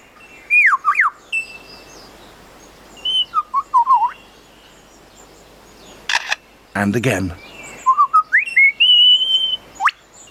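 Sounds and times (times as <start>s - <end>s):
soft hiss: 0.0s - 10.3s
bird mimicking a motor-driven camera: 6.1s - 6.4s
speech: 6.8s - 7.4s.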